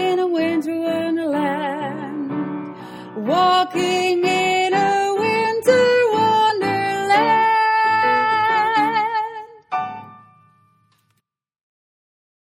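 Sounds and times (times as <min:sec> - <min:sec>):
second soprano singing: 0:00.0 - 0:09.8.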